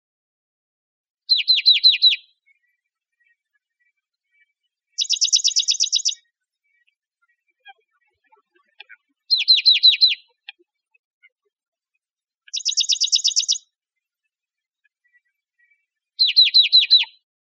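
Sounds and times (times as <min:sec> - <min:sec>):
Dark-eyed junco trilling: 0:01.3 - 0:02.3, 0:05.0 - 0:06.2, 0:09.3 - 0:10.3, 0:12.5 - 0:13.6, 0:16.2 - 0:17.2.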